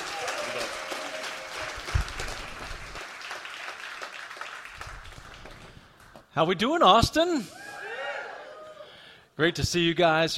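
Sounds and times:
audience in Austin clapping to welcome a speaker: 0.0 - 6.3
speech: 6.4 - 7.6, 9.4 - 10.3.

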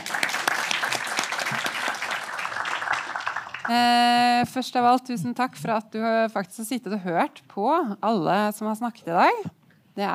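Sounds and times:
crowd applause: 0.0 - 3.8
speech: 3.7 - 10.1.

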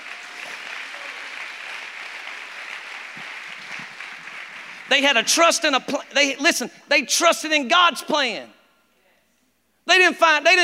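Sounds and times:
audience applause: 0.0 - 5.7
speech: 4.9 - 8.6, 9.9 - 10.6.

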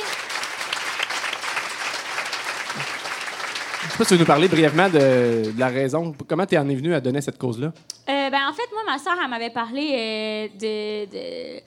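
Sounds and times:
audience applause: 0.0 - 6.0
speech: 4.0 - 11.6.

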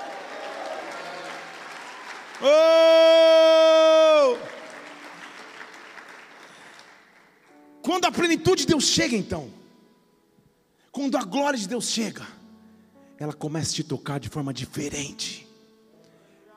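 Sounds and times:
loud sustained shout: 0.0 - 4.8
audience clapping: 0.0 - 7.6
speech: 2.4 - 2.8, 8.0 - 9.6, 11.0 - 12.4, 13.2 - 15.4.

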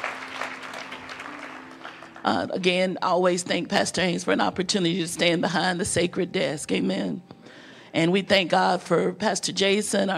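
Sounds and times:
audience clapping: 0.0 - 2.5
speech: 2.2 - 10.1.

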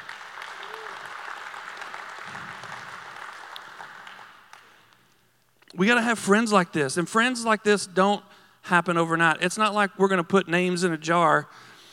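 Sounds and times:
crowd applauding: 0.0 - 5.0
speech: 5.8 - 11.7.

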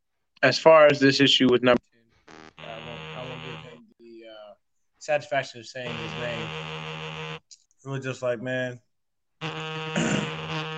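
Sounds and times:
speech: 0.4 - 1.9, 5.0 - 6.8, 7.8 - 9.6
mobile phone vibrating: 2.3 - 3.8, 5.9 - 7.4, 9.4 - 10.7.

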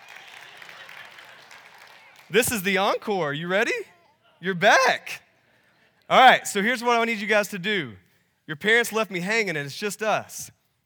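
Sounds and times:
audience clapping: 0.0 - 3.8
speech: 2.3 - 5.2, 6.1 - 10.6.

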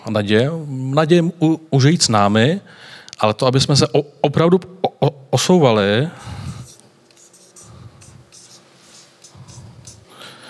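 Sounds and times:
speech: 0.1 - 6.5
marker squeaking and scratching on a writing surface: 6.2 - 10.4.

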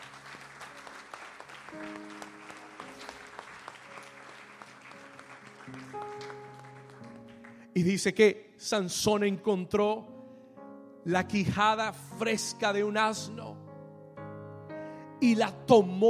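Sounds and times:
audience applause: 0.0 - 7.7
sustained keyboard chords: 0.0 - 8.6, 9.2 - 16.0
speech: 5.9 - 6.5, 7.8 - 10.1, 11.1 - 13.5, 15.2 - 16.0.

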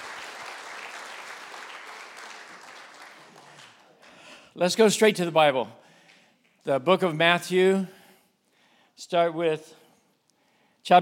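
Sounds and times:
audience applause in church: 0.0 - 4.1
speech: 4.6 - 5.8, 6.6 - 8.0, 9.0 - 9.8.

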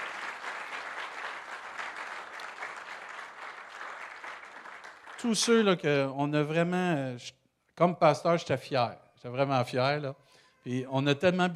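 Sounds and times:
audience applause: 0.0 - 5.6
speech: 5.2 - 11.5.

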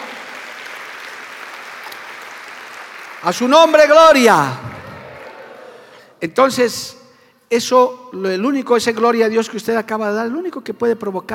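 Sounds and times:
crowd clapping: 0.0 - 6.0
speech: 3.2 - 4.7, 6.2 - 11.3.

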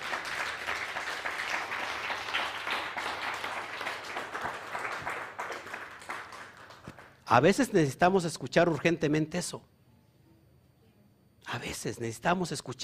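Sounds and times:
loud audience applause: 0.0 - 7.2
speech: 7.3 - 9.7, 11.8 - 12.8.

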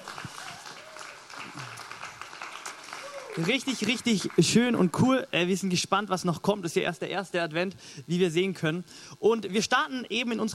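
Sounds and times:
audience applause: 0.0 - 4.8
speech: 3.4 - 10.5.

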